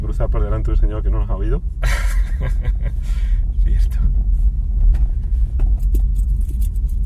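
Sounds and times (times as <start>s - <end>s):
speech: 0.2s - 4.5s
laughter: 1.8s - 3.1s
keys vibrating in a moving car: 5.7s - 7.0s.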